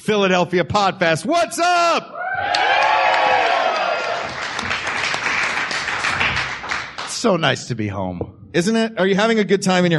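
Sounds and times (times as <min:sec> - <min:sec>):
speech: 0:00.0 - 0:02.8, 0:07.2 - 0:09.9
audience cheering: 0:02.1 - 0:06.8
applause: 0:02.5 - 0:07.3.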